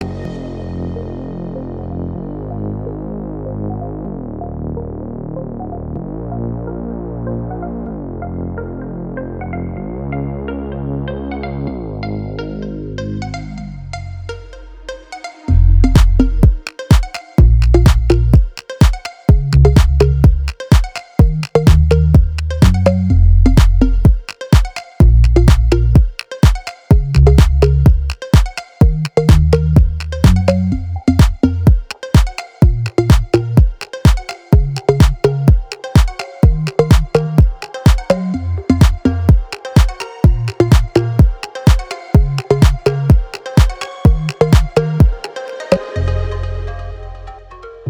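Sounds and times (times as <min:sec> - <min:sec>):
future house music: 0:15.1 - 0:47.8.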